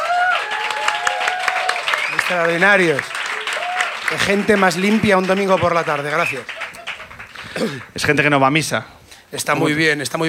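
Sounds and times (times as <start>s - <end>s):
audience applause: 0.0s - 8.2s
speech: 2.3s - 3.1s, 4.1s - 6.6s, 7.6s - 10.2s.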